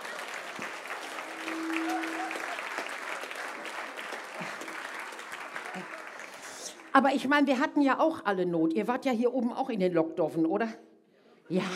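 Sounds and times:
audience applause: 0.0 - 6.9
speech: 7.0 - 10.9, 11.5 - 11.7.

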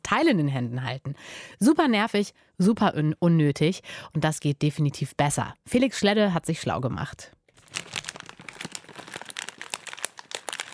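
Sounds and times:
speech: 0.1 - 7.9
plastic packaging film crinkling while being peeled and unwrapped: 7.5 - 10.7.

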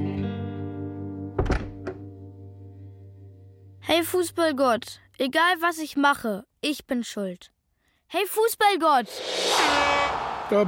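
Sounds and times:
door being shut: 1.4 - 2.0
speech: 3.9 - 10.6.

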